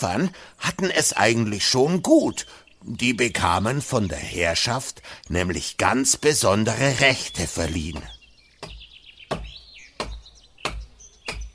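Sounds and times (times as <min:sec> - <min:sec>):
speech: 0:00.0 - 0:08.2
tree being chopped with axe: 0:07.8 - 0:11.5.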